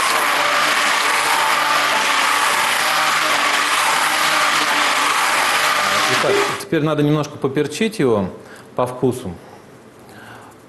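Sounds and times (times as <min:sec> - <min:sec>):
kitchen blender running: 0:00.0 - 0:06.7
speech: 0:06.2 - 0:09.5.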